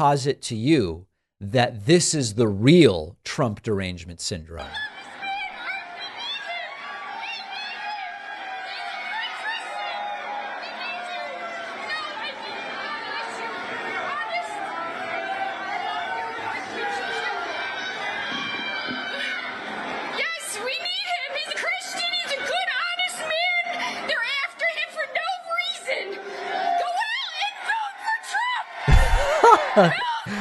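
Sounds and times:
speech: 0:00.0 - 0:04.9
crowd booing and shouting at a rally: 0:04.8 - 0:24.7, 0:25.7 - 0:30.3
laughter: 0:28.8 - 0:30.3.

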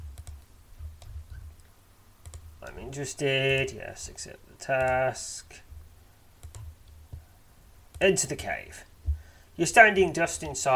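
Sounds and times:
low steady hum: 0:00.0 - 0:10.7
computer clicks while playing a text adventure game: 0:00.1 - 0:02.4, 0:06.4 - 0:07.2
speech: 0:02.6 - 0:05.7, 0:08.0 - 0:08.9, 0:09.6 - 0:10.7.

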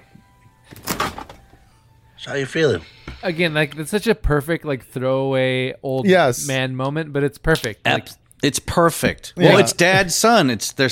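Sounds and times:
freezer door being shut: 0:00.7 - 0:01.4
speech: 0:02.2 - 0:10.8.

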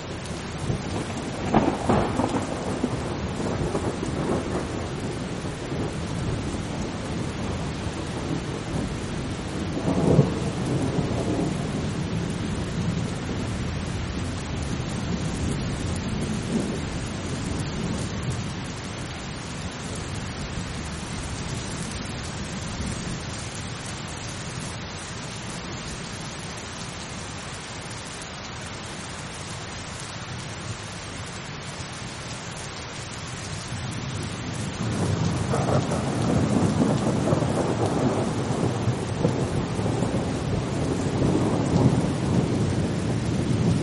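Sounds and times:
calm steady rain: 0:00.0 - 0:43.8
low rolling thunder: 0:00.2 - 0:13.6, 0:34.1 - 0:43.8.

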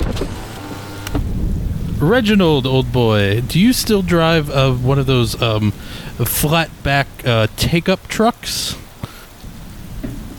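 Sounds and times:
car window being rolled down: 0:00.0 - 0:03.0
speech: 0:02.0 - 0:08.8.

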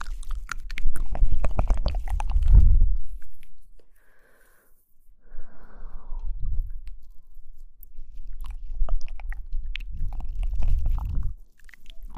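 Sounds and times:
mouth sounds of chewing and biting with wet clicks and soft crunches: 0:00.0 - 0:03.5, 0:06.8 - 0:12.1.

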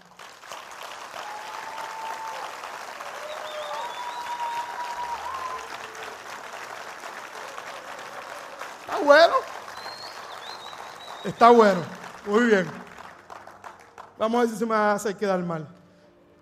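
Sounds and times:
audience applause: 0:00.0 - 0:14.6
faint whistles and cheers: 0:01.1 - 0:06.4, 0:07.2 - 0:11.9
speech: 0:09.0 - 0:09.5, 0:11.2 - 0:12.8, 0:14.2 - 0:15.8.

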